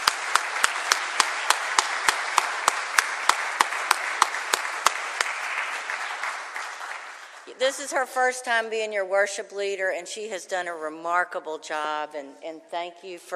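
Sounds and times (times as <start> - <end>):
audience applause: 0.0 - 7.6
speech: 7.6 - 13.3.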